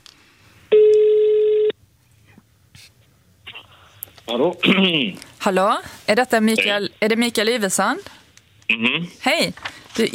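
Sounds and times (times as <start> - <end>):
telephone call ringing tone: 0.7 - 1.7
speech: 4.3 - 10.1.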